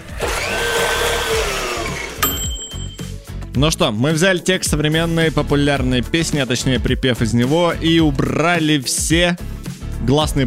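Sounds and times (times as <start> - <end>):
blender making a smoothie: 0.0 - 2.2
speech: 3.6 - 10.4.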